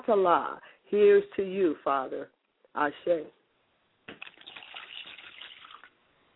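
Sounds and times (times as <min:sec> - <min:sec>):
speech: 0:00.1 - 0:03.4
liquid being poured as libation: 0:04.1 - 0:06.3.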